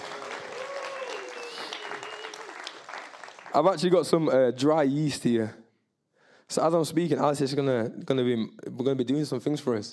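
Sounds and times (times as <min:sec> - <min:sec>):
audience applause: 0:00.0 - 0:03.9
faint whistle-like tone: 0:01.4 - 0:02.4
speech: 0:03.6 - 0:05.6, 0:06.5 - 0:09.9.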